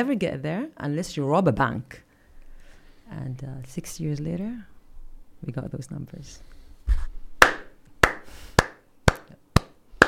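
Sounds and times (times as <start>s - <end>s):
speech: 0.0s - 2.0s, 3.1s - 4.7s, 5.4s - 7.1s
host clapping hands: 7.4s - 10.0s.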